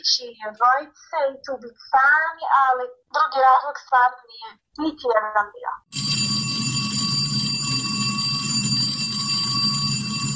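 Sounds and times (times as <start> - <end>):
speech: 0.0 - 6.4
school bell ringing: 5.9 - 10.3.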